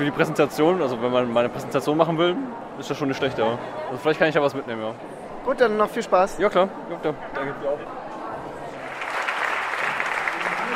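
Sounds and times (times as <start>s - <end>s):
speech: 0.0s - 8.1s
audience applause: 8.7s - 10.7s.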